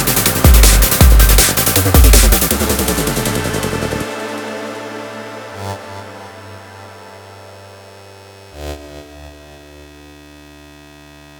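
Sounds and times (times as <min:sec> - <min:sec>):
drum and bass music: 0:00.0 - 0:07.5.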